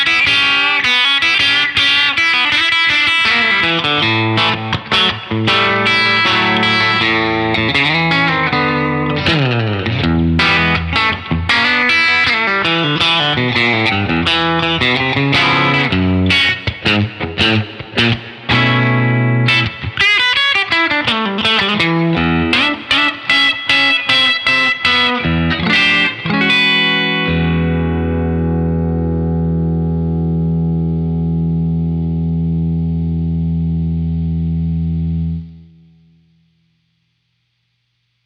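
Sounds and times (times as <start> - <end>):
Telecaster electric guitar through a clean boost: 0.0 - 36.9.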